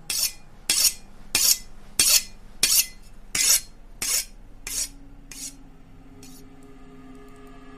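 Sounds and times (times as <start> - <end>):
knife being sharpened: 0.1 - 5.6, 6.2 - 6.4.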